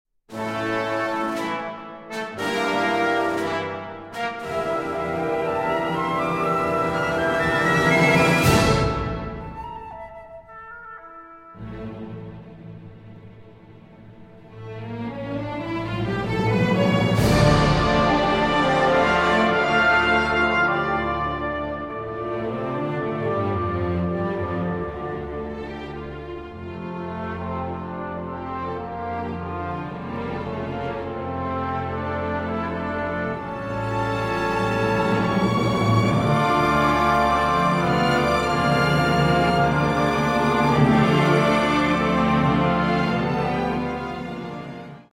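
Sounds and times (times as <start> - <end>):
symphony in D minor played tempo moderato: 0.3 - 45.1.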